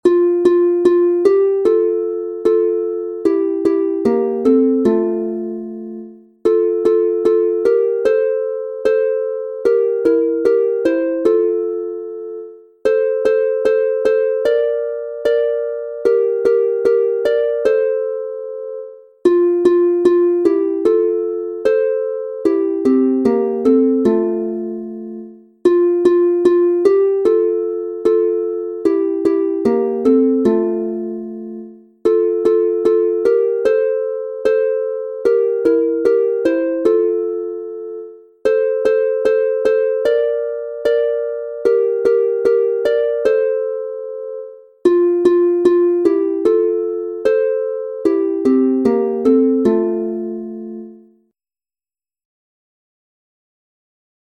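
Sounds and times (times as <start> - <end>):
two-voice instrumental harp in F major: 0.0 - 51.2.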